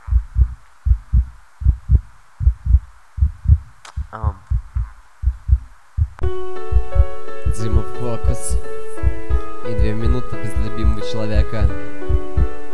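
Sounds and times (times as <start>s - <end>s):
heartbeat: 0.0s - 9.3s, 11.6s - 12.6s
speech: 4.1s - 4.4s, 7.6s - 8.7s, 9.7s - 12.0s
sustained harmonic tone: 6.2s - 12.7s.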